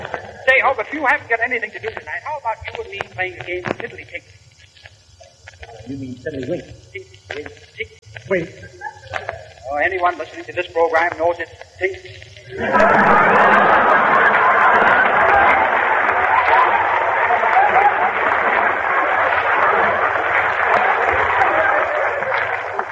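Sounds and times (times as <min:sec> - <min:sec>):
audience applause: 0:00.0 - 0:00.5, 0:12.6 - 0:22.8
laughter: 0:00.0 - 0:01.1, 0:07.8 - 0:10.5, 0:12.4 - 0:22.8
speech: 0:00.5 - 0:04.4, 0:05.9 - 0:08.8, 0:09.7 - 0:13.9
crowd murmur: 0:12.5 - 0:22.8.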